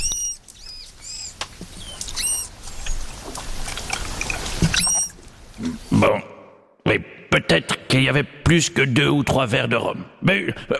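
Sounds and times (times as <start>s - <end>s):
manatee squeaky chirps: 0.0s - 3.2s, 3.8s - 5.9s
speech: 5.6s - 6.3s, 7.4s - 10.7s.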